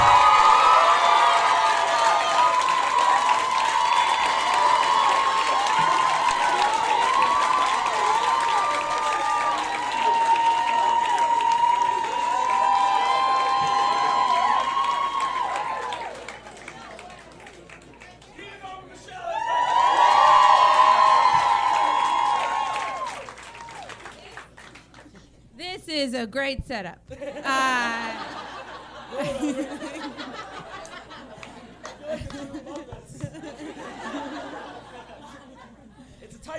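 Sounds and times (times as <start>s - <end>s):
crowd whoops and shouts: 0.0s - 16.1s, 19.3s - 23.9s
crowd clapping: 0.0s - 25.3s, 28.2s - 35.1s
speech: 26.4s - 28.1s
laughter: 27.1s - 36.4s.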